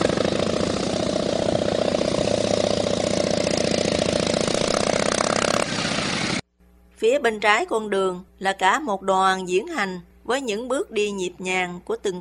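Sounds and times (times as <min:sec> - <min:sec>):
big Harley-Davidson motorcycle engines rumbling: 0:00.0 - 0:06.4
speech: 0:07.0 - 0:12.1.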